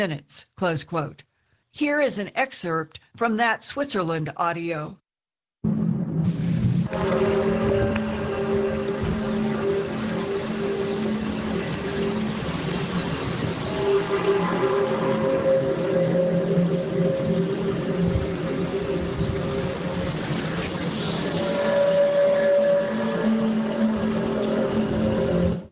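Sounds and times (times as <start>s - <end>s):
speech: 0.0s - 5.0s
low humming booming mystery sound: 5.6s - 25.6s.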